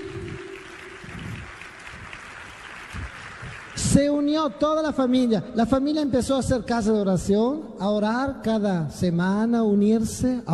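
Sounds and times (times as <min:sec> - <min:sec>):
church congregation clapping during a sermon: 0:00.0 - 0:05.1
speech: 0:04.0 - 0:10.5.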